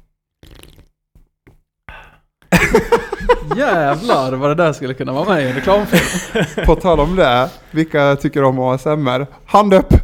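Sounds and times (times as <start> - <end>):
person slurping an ice-cold Pepsi Max: 0.3 - 1.6
laughter: 2.5 - 7.9
speech: 2.7 - 10.0.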